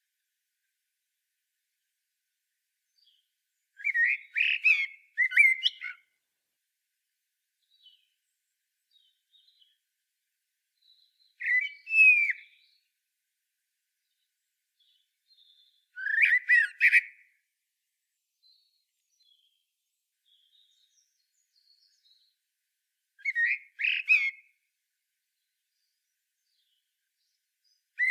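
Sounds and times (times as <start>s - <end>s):
common blackbird singing: 3.8s - 6.0s, 8.9s - 9.8s, 10.8s - 12.9s, 14.8s - 17.2s, 18.4s - 19.6s, 20.2s - 22.3s, 23.2s - 24.4s, 25.7s - 28.0s.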